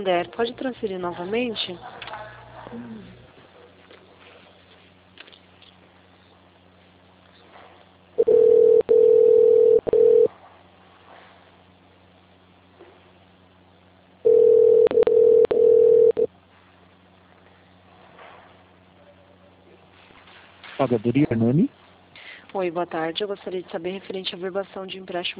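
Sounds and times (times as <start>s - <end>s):
speech: 0.0s - 2.0s, 2.7s - 3.2s, 20.8s - 21.8s, 22.6s - 25.3s
phone line hiss: 8.2s - 10.3s, 14.2s - 16.3s
telephone tone after a dropped call: 8.2s - 10.3s, 14.3s - 16.3s.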